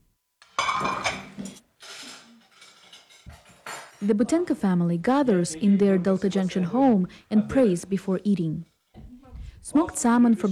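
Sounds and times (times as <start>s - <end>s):
dishes and cutlery clinking set on a table at dinner: 0.4s - 4.6s
speech: 4.0s - 8.7s, 9.7s - 10.5s.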